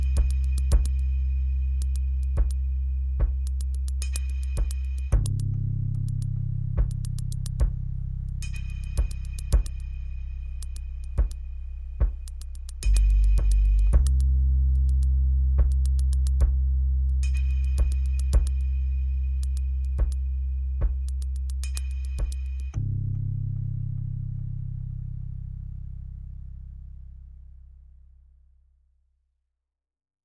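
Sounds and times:
drums: 0.0 - 1.0, 1.8 - 2.6, 3.2 - 5.4, 6.1 - 7.8, 8.5 - 9.8, 11.2 - 11.4, 12.0 - 14.3, 14.9 - 18.6, 19.4 - 20.2, 20.8 - 22.4
bass: 0.0 - 29.6.

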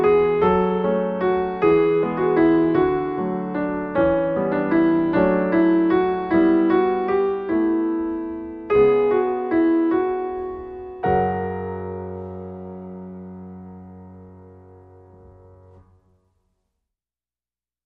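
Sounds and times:
kind waltz music: 0.0 - 14.2.

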